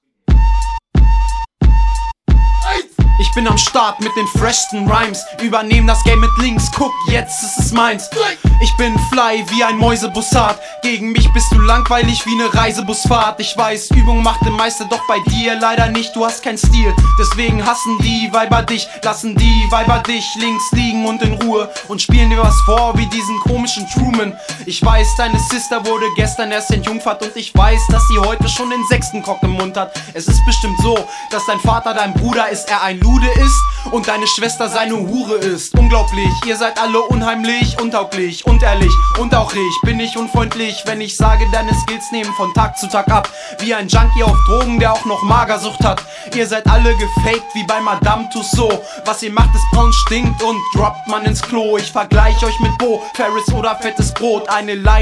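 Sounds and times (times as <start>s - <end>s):
Indian flute remix: 0.2s - 55.0s.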